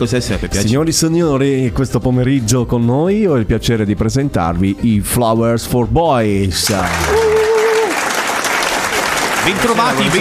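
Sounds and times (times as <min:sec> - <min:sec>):
speech: 0:00.0 - 0:07.3, 0:09.5 - 0:10.1
canned applause sound effect: 0:06.6 - 0:10.1.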